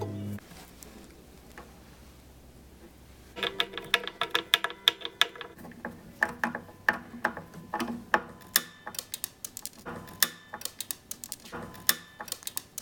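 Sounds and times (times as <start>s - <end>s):
screw over-tightened into a wooden guitar strap button until it breaks: 3.4s - 12.8s.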